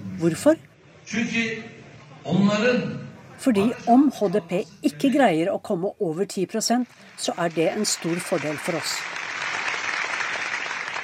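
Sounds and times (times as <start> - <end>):
speech: 0.2 - 9.2
crowd applauding: 6.9 - 11.0.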